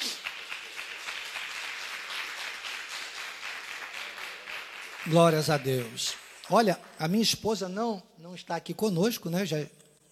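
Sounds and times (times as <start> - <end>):
audience applauding: 0.0 - 6.7
speech: 5.0 - 9.8.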